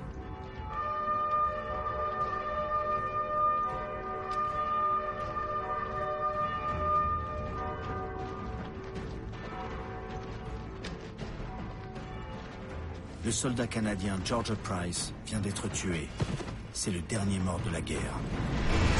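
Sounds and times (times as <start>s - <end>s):
bells pealing for the ceasefire: 0.0s - 15.7s
bugles sounding a call: 0.6s - 8.5s
speech: 13.2s - 18.8s.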